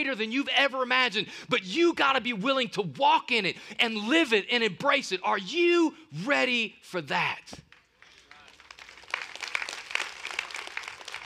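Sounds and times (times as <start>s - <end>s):
speech: 0.0s - 7.7s
audience clapping: 7.7s - 11.2s.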